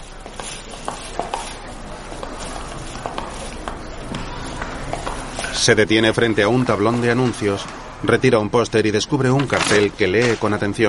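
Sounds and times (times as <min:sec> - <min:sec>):
hurried footsteps along a school hallway: 0:00.0 - 0:07.8
continuous noise: 0:00.0 - 0:10.8
speech: 0:05.6 - 0:10.8.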